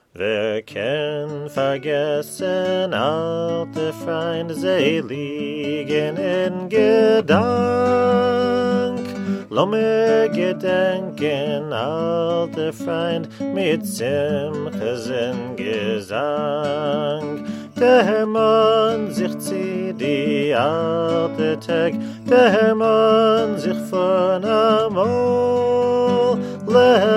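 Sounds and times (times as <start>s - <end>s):
Yiddish folk song: 0.0s - 27.1s.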